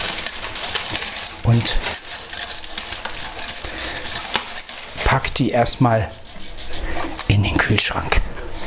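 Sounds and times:
glass bottles clinking together: 0:00.1 - 0:05.1
speech: 0:01.5 - 0:02.0, 0:05.1 - 0:06.2, 0:07.7 - 0:08.3.

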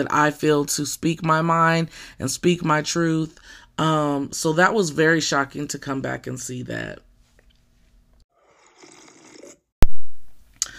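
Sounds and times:
speech: 0:00.0 - 0:07.1
sipping tea: 0:08.4 - 0:09.7.

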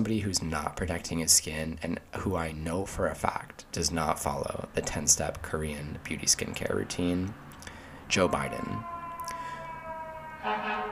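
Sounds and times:
speech: 0:00.0 - 0:07.4, 0:08.1 - 0:08.9
fire truck siren from the street: 0:08.1 - 0:10.9.

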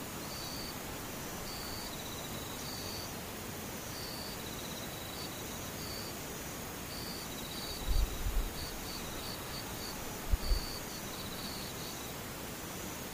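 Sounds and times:
insects calling with short rapid chirps: 0:00.0 - 0:13.1
steady even hiss: 0:00.0 - 0:13.1.

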